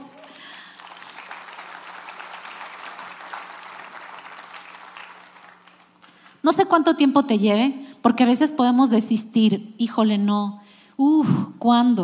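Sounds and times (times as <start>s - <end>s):
audience applause: 0.2s - 6.3s
speech: 6.4s - 12.0s.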